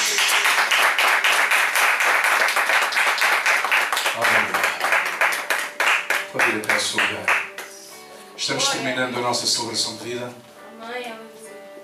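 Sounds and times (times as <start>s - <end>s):
audience applauding: 0.0s - 8.0s
speech: 8.5s - 11.3s.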